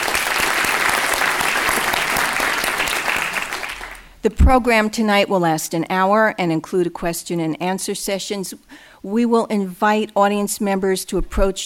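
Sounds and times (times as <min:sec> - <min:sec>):
audience applause at an evening talk and Q&A event: 0:00.0 - 0:04.1
speech: 0:04.2 - 0:11.6.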